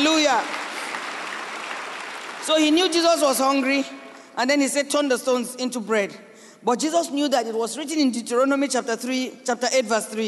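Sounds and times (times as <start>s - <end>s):
audience clapping: 0.0s - 4.4s
speech: 0.3s - 0.7s, 2.4s - 10.2s.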